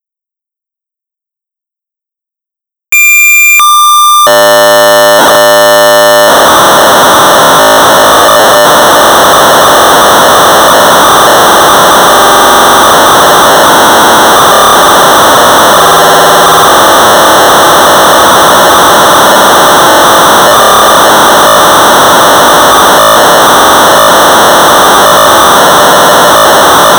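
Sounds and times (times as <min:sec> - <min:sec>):
1200 baud modem data tones: 0:03.0 - 0:26.9.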